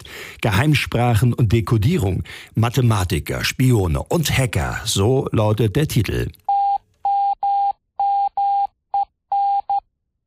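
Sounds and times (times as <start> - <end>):
speech: 0.4 - 6.4
morse code beeps: 6.5 - 9.8.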